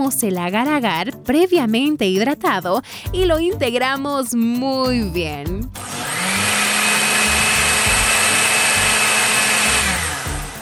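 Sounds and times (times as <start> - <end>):
speech: 0.0 - 6.0
blender blending a mixture: 5.8 - 10.6.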